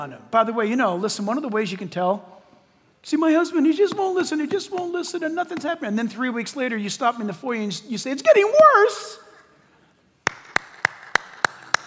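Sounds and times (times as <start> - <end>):
speech: 0.0 - 2.4, 3.0 - 9.3
audience clapping: 10.2 - 11.8.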